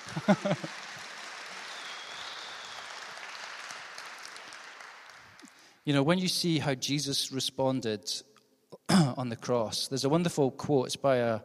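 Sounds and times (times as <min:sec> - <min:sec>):
laughter: 0:00.0 - 0:00.8
audience round of applause: 0:00.0 - 0:05.7
speech: 0:00.1 - 0:00.9, 0:05.8 - 0:08.3, 0:08.9 - 0:11.4.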